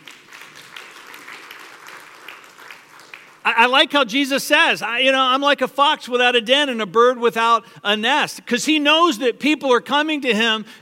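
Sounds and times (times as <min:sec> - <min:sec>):
audience applause: 0:00.0 - 0:03.6
speech: 0:03.4 - 0:10.8.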